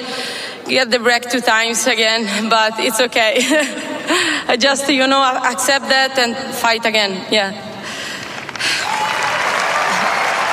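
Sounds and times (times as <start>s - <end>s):
speech: 0.7s - 7.7s
tennis crowd cheering: 8.8s - 10.5s.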